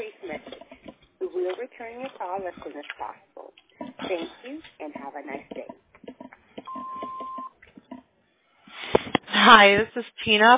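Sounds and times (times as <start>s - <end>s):
speech: 2.0s - 3.3s, 4.1s - 5.8s, 9.5s - 10.5s
voicemail recording tone beep: 6.7s - 7.6s.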